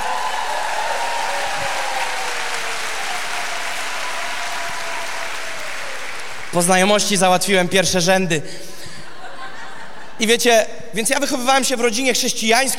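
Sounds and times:
crowd applause: 0:00.0 - 0:07.2
speech: 0:06.6 - 0:08.7, 0:10.2 - 0:12.7
laughter: 0:08.7 - 0:10.3.

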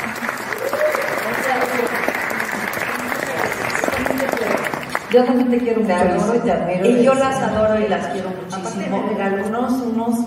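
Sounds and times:
studio audience applause: 0:00.0 - 0:05.4
speech: 0:05.1 - 0:10.2.

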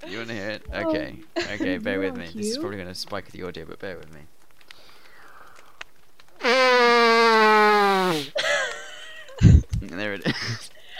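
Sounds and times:
speech: 0:00.0 - 0:04.4, 0:09.8 - 0:10.9
person imitating a circus elephant trumpeting: 0:06.4 - 0:08.3
laughter: 0:08.4 - 0:10.9.

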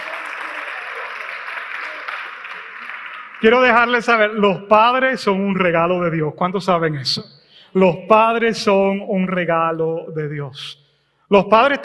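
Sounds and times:
audience applause: 0:00.0 - 0:04.1
speech: 0:03.4 - 0:11.8.

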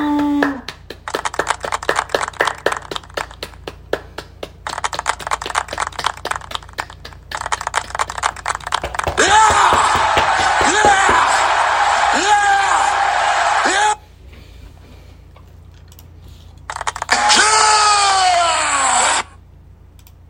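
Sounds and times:
small group applauding graduates: 0:00.1 - 0:13.8
people cheering and whooping: 0:09.1 - 0:14.0, 0:17.1 - 0:19.3.

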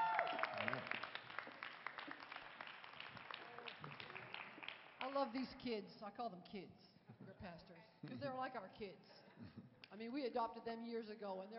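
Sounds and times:
church congregation applause welcoming two pastors: 0:00.0 - 0:05.2
speech: 0:05.2 - 0:11.5.

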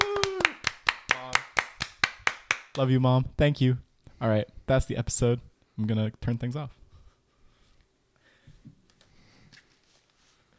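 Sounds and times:
voiced cheers or hums: 0:00.0 - 0:00.7
hand clapping: 0:00.0 - 0:02.9
speech: 0:02.8 - 0:06.8.

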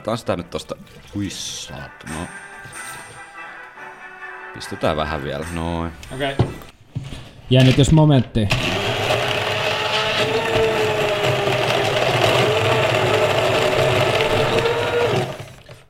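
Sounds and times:
speech: 0:00.0 - 0:03.0, 0:04.6 - 0:08.8
hand blender crushing ice cubes: 0:08.5 - 0:15.8.

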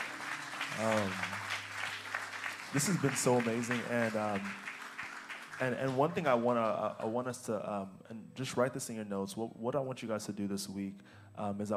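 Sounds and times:
crowd applause: 0:00.0 - 0:07.2
speech: 0:00.8 - 0:01.4, 0:02.7 - 0:04.7, 0:05.6 - 0:11.7.

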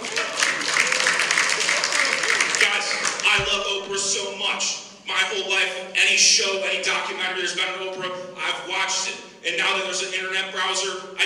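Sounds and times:
applause: 0:00.0 - 0:03.3
speech: 0:03.9 - 0:11.2.

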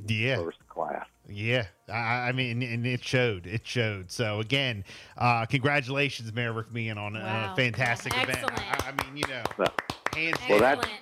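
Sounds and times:
speech: 0:00.1 - 0:00.6, 0:01.3 - 0:11.0
brief round of applause: 0:07.4 - 0:11.0.

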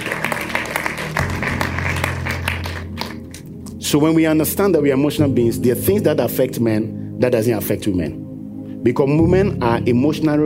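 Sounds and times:
audience clapping hands: 0:00.0 - 0:03.8
speech: 0:03.9 - 0:08.2, 0:08.8 - 0:10.4.

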